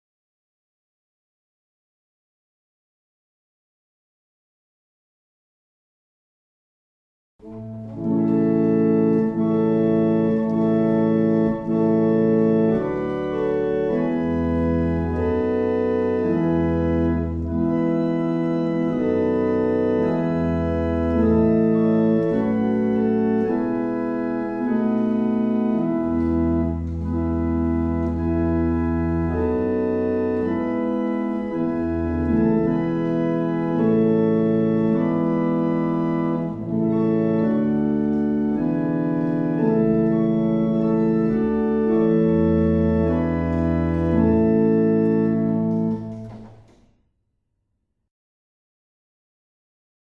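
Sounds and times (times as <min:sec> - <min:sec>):
barrel organ playing a hymn: 0:07.4 - 0:46.6.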